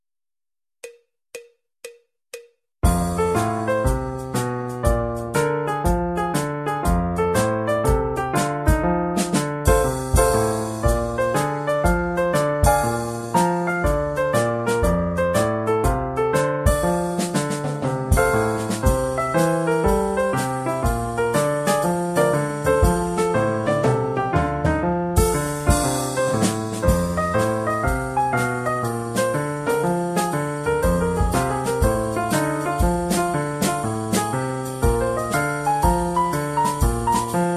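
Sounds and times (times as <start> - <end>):
drumming: 2.4 - 7.0, 7.9 - 15.0, 15.8 - 37.5.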